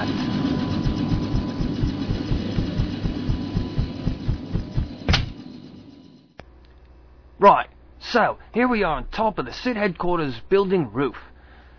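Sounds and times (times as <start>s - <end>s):
transport helicopter engine droning: 0.0s - 6.4s
helicopter rotors thumping: 0.6s - 5.4s
speech: 7.4s - 11.3s.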